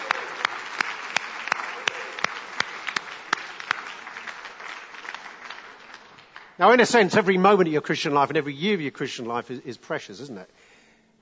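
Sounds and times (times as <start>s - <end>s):
audience applause: 0.0s - 7.0s
speech: 6.6s - 11.2s.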